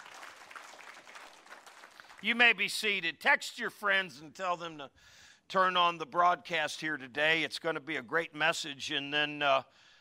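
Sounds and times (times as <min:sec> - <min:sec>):
audience applause: 0:00.0 - 0:02.4
speech: 0:02.2 - 0:09.9.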